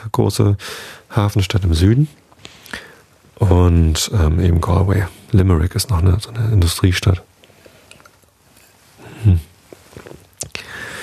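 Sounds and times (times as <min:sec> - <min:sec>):
speech: 0:00.1 - 0:02.8, 0:03.4 - 0:07.3, 0:09.2 - 0:09.5
person taking a sip of a drink: 0:09.3 - 0:10.7
wet mouth clicks: 0:09.7 - 0:10.6.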